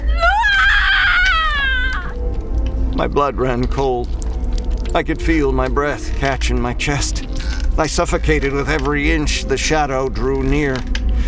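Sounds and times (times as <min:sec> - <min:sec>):
ear-shattering high-pitched wail: 0:00.0 - 0:02.2
low rumble: 0:00.0 - 0:11.2
speech: 0:03.0 - 0:04.2, 0:04.9 - 0:11.0.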